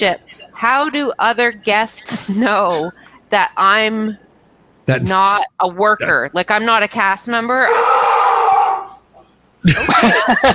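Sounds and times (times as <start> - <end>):
speech: 0.0 - 4.2, 4.8 - 8.0, 9.6 - 10.5
laughter: 1.9 - 3.0, 9.6 - 10.5
dog howling and yelping: 7.7 - 9.0.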